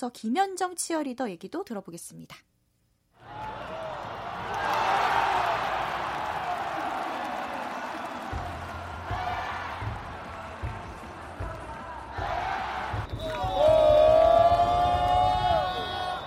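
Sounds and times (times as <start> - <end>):
speech: 0.0 - 2.5
crowd cheering at a stadium: 3.2 - 16.2.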